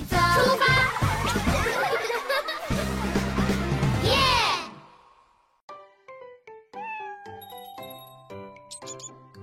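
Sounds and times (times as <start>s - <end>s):
laughter: 0.3s - 4.0s
cat meowing: 6.7s - 7.5s
light plinking chime-like notes: 7.4s - 9.4s.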